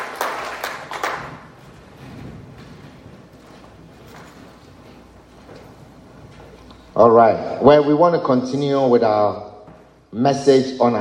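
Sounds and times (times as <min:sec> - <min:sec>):
crowd clapping: 0:00.0 - 0:03.8
low murmur of shuffling: 0:01.1 - 0:07.3
speech: 0:07.0 - 0:09.5, 0:10.1 - 0:10.9.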